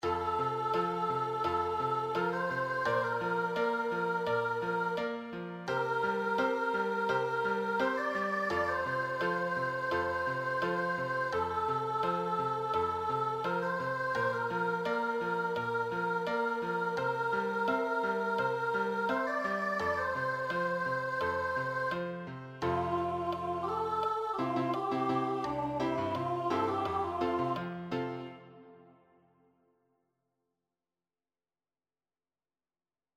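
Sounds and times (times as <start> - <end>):
musical accompaniment: 0.0 - 29.2.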